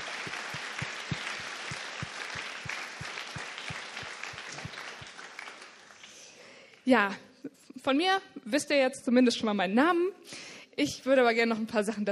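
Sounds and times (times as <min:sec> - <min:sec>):
audience clapping: 0:00.0 - 0:06.5
speech: 0:06.9 - 0:12.1.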